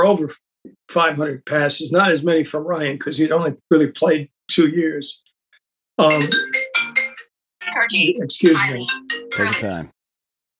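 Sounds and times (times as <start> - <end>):
speech: 0.0 - 5.3, 6.0 - 6.6, 7.7 - 10.0
phone ringtone: 6.0 - 9.9.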